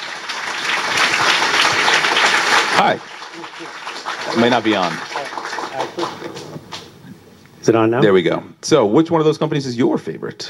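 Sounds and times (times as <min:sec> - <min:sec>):
crowd applauding: 0:00.0 - 0:07.0
speech: 0:02.8 - 0:05.2, 0:05.8 - 0:06.8, 0:07.6 - 0:10.4.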